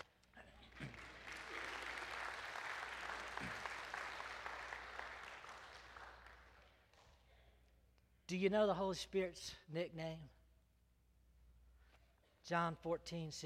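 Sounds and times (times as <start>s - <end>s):
crowd applauding: 0.0s - 7.0s
speech: 8.3s - 10.4s, 12.5s - 13.4s.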